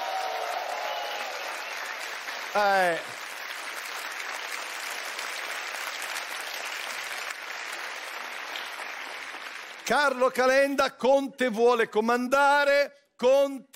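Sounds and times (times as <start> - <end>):
audience applause for the camera operators: 0.0 - 10.2
speech: 2.5 - 3.2, 9.9 - 13.7.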